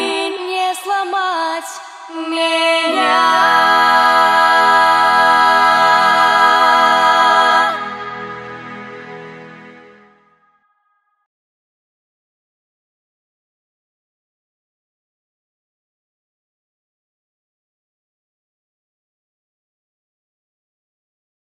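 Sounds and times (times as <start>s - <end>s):
Russian woman singing a cappella: 0.0s - 7.8s.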